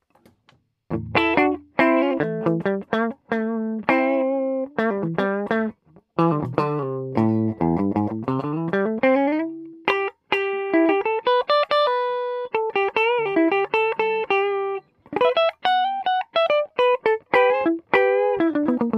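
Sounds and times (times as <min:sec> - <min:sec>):
ES335 clean electric guitar: 0:00.9 - 0:18.9.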